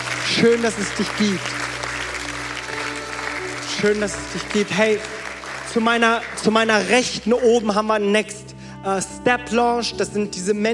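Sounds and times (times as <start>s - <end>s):
audience applause: 0.0s - 7.2s
speech: 0.4s - 1.6s, 3.8s - 10.7s.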